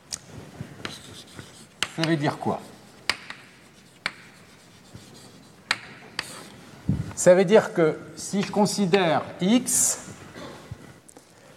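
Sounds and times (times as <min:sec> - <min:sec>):
writing on a board during a mathematics lecture: 0:00.7 - 0:06.6
speech: 0:02.0 - 0:02.7, 0:07.2 - 0:10.1.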